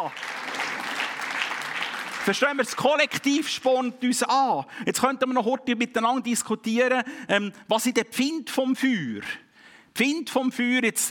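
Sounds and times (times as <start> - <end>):
speech: 0.0 - 0.4, 2.3 - 9.4, 10.0 - 11.0
audience applause: 0.0 - 2.8.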